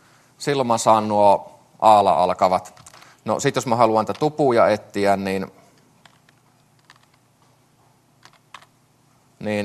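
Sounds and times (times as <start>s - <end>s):
speech: 0.4s - 5.6s, 9.4s - 9.6s
faint computer keyboard typing: 2.7s - 3.1s, 6.0s - 7.2s, 8.2s - 8.7s.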